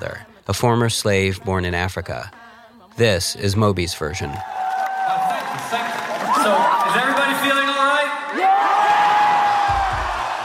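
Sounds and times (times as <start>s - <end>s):
speech: 0.0s - 2.4s, 3.0s - 4.6s
audience whoops and cheers at a live music performance: 4.1s - 10.4s.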